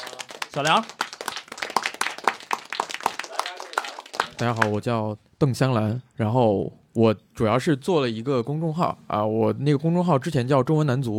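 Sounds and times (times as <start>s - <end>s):
applause welcoming guests: 0.0s - 4.8s
speech: 0.5s - 1.0s, 4.4s - 11.1s.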